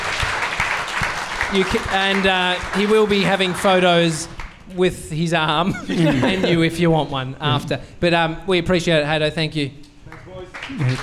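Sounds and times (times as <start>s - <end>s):
audience applause for a guest at a casual event: 0.0s - 4.6s, 10.1s - 11.0s
speech: 1.5s - 9.8s, 10.7s - 11.0s
laughter: 5.6s - 6.9s, 10.7s - 11.0s.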